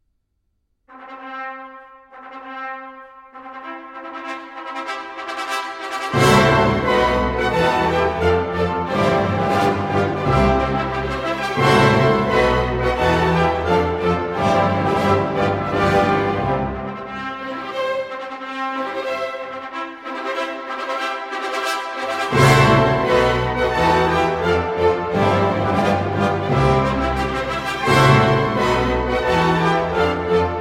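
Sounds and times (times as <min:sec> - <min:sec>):
music: 0:00.7 - 0:30.5.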